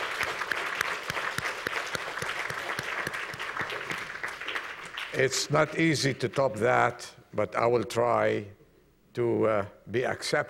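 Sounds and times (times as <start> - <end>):
audience applause: 0.0 - 5.3
speech: 5.2 - 8.6, 9.2 - 10.4.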